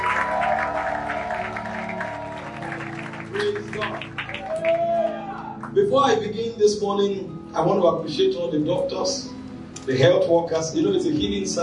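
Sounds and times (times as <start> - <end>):
audience shouting: 0.0 - 2.9, 4.4 - 5.6
audience clapping: 0.0 - 5.8
speech: 3.8 - 4.2, 5.9 - 11.6.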